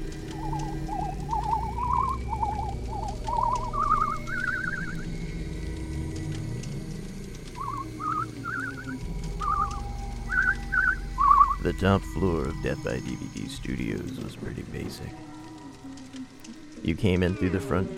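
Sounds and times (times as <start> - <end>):
whistling: 0.1 - 5.9, 7.5 - 16.7
speech: 11.7 - 15.3, 16.9 - 17.9.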